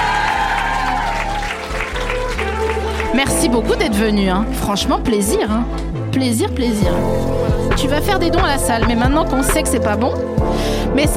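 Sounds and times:
audience applause: 0:00.0 - 0:04.1
speech: 0:03.1 - 0:11.1.

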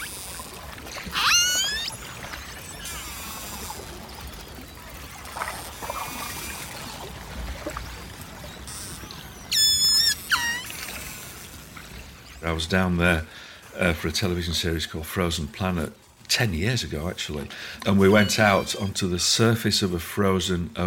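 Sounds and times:
pod of orcas calling underwater in the Ross Sea in Antarctica: 0:00.0 - 0:11.6, 0:17.8 - 0:20.2
speech: 0:12.5 - 0:20.8.

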